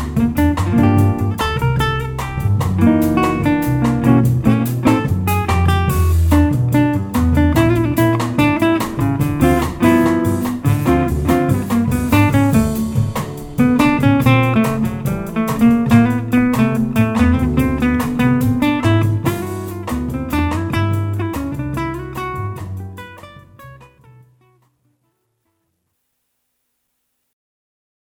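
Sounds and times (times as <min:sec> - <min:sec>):
Latin jazz trio playing: 0:00.0 - 0:24.3.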